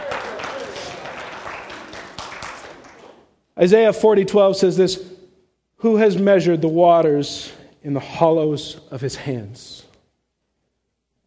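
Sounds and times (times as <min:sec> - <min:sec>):
audience applause: 0:00.0 - 0:03.2
speech: 0:03.6 - 0:05.1, 0:05.8 - 0:09.9.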